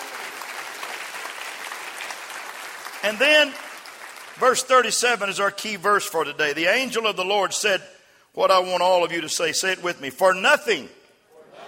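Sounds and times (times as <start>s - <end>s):
audience clapping: 0.0s - 5.3s
speech: 3.0s - 3.6s, 4.4s - 11.0s.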